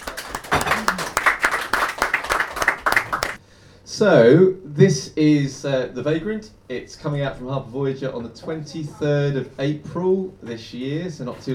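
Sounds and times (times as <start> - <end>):
audience applause: 0.0 - 3.4
speech: 4.0 - 11.5.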